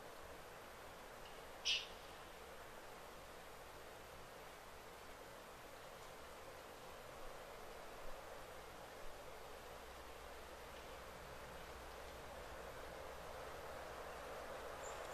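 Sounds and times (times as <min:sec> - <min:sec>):
faint ticks and rustles: 0:00.0 - 0:15.1
soft hiss in a deep-wild thicket: 0:00.0 - 0:15.1
sharp bright bird chirp: 0:01.6 - 0:02.0, 0:14.8 - 0:15.1.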